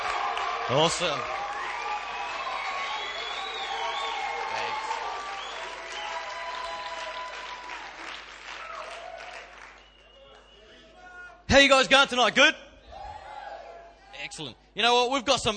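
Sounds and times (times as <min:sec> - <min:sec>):
church congregation clapping to welcome a pastor: 0:00.0 - 0:10.6
speech: 0:00.7 - 0:01.4, 0:11.5 - 0:12.6, 0:14.2 - 0:15.5.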